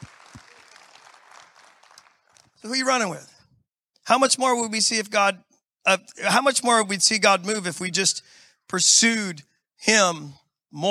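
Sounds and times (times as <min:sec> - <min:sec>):
audience clapping: 0:00.0 - 0:03.0
speech: 0:02.6 - 0:03.3, 0:04.1 - 0:10.9.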